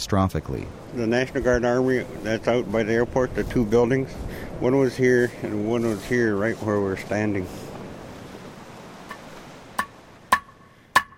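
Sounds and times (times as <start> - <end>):
speech: 0.0 - 7.6
hammering a new unak or seal hook: 9.1 - 11.1.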